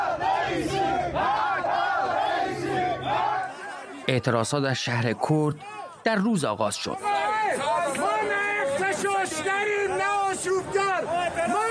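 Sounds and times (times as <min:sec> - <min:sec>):
protesters shouting at security forces: 0:00.0 - 0:04.7, 0:05.5 - 0:06.1, 0:06.9 - 0:11.6
speech: 0:04.1 - 0:07.1.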